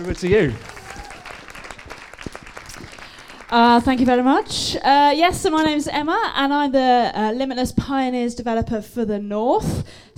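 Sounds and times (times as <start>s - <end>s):
speech: 0.0s - 0.8s, 3.5s - 10.1s
audience applauding to welcome a speaker: 0.0s - 4.8s.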